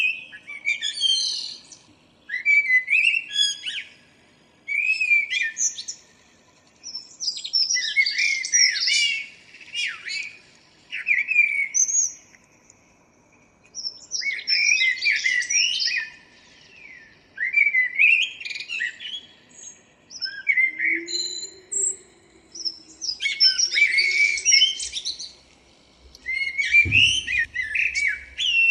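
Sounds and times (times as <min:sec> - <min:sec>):
common blackbird singing: 0:00.0 - 0:04.0, 0:04.7 - 0:06.1, 0:06.8 - 0:12.2, 0:13.8 - 0:25.4, 0:26.0 - 0:28.6
low hum: 0:25.3 - 0:28.6
low thump: 0:26.6 - 0:28.2.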